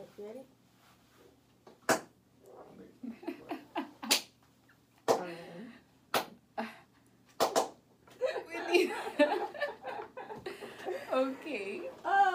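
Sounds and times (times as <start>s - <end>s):
hand clap sound effect: 1.9s - 2.1s, 4.0s - 4.3s, 5.1s - 5.3s, 6.1s - 6.4s, 7.3s - 7.8s
laughter: 3.1s - 4.1s, 8.2s - 12.3s.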